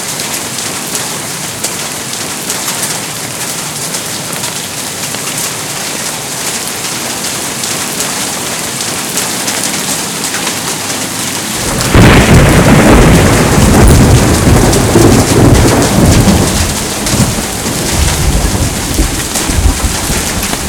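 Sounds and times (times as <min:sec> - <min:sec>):
rain falling in a steady dense hiss: 0:00.0 - 0:20.6
loud deep rumbling roll of thunder: 0:11.5 - 0:20.6.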